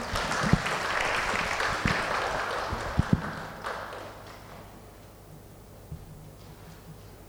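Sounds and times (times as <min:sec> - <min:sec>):
audience applause: 0:00.0 - 0:04.8.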